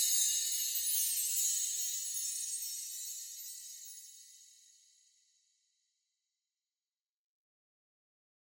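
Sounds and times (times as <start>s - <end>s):
shimmering chimes with steady light frequency shift: 0.0s - 5.3s.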